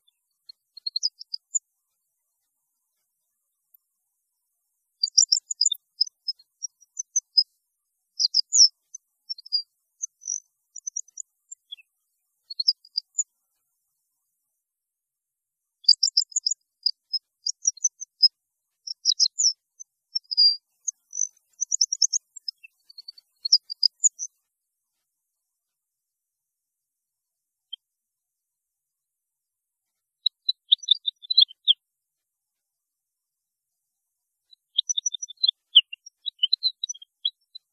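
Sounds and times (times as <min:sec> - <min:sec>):
European goldfinch song: 0:00.0 - 0:01.6, 0:05.0 - 0:07.6, 0:08.2 - 0:13.3, 0:15.8 - 0:24.4, 0:30.2 - 0:31.8, 0:34.5 - 0:37.7.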